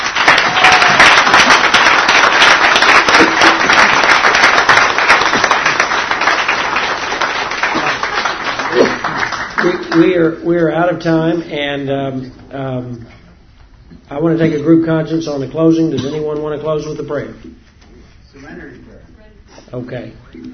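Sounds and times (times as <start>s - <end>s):
audience applause for a panel: 0.0s - 10.2s
speech: 10.0s - 13.2s, 14.1s - 17.6s, 19.7s - 20.5s.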